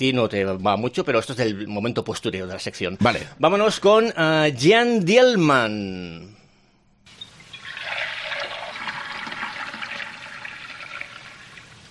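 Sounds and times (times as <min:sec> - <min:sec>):
speech: 0:00.0 - 0:06.4
water poured out of a bucket: 0:07.4 - 0:11.9.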